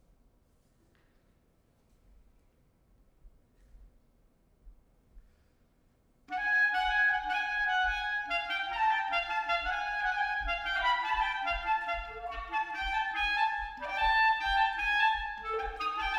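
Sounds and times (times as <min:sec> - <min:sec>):
solo clarinet: 0:06.3 - 0:16.1.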